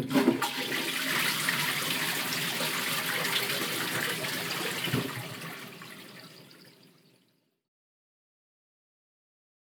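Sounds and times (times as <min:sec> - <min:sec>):
person urinating: 0:00.1 - 0:07.1.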